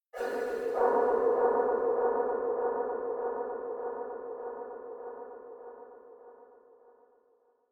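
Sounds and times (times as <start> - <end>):
nightmare soundscape: 0.2 - 6.0.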